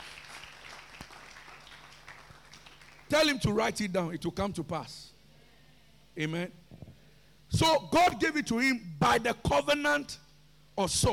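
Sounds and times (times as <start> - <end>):
church congregation clapping hands during a sermon: 0.0 - 3.4
speech: 3.1 - 5.1, 6.2 - 6.6, 7.5 - 10.2, 10.8 - 11.1.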